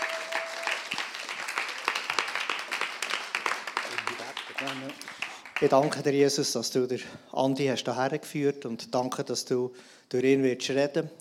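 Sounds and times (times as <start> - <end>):
audience applause: 0.0 - 6.0
speech: 4.6 - 11.1.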